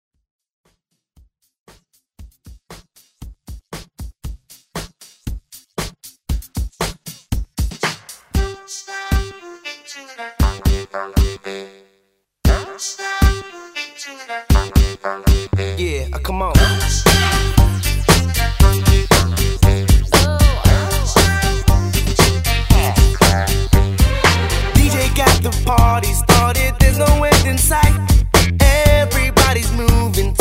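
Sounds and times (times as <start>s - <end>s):
retro drum beat: 1.2s - 9.3s, 10.4s - 11.4s, 12.5s - 13.4s, 14.5s - 15.6s, 16.6s - 30.3s.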